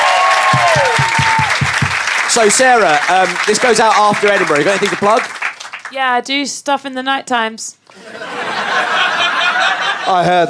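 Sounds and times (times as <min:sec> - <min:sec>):
audience applause: 0:00.0 - 0:06.0
speech: 0:02.4 - 0:08.4, 0:10.1 - 0:10.4
laughter: 0:08.0 - 0:10.4.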